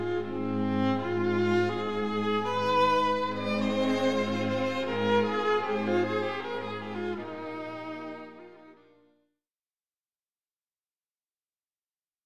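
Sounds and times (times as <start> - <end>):
viola: 0.0 - 9.2.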